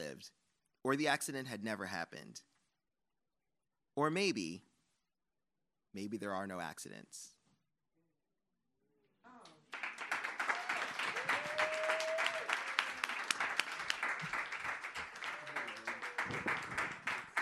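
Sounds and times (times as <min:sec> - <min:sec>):
speech: 0:00.2 - 0:02.5, 0:04.0 - 0:04.7, 0:05.9 - 0:07.4
audience applause: 0:09.7 - 0:17.4.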